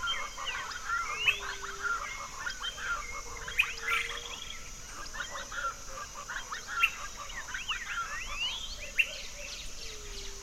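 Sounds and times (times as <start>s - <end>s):
birdsong chorus at sunrise in an orchard: 0.0s - 10.4s.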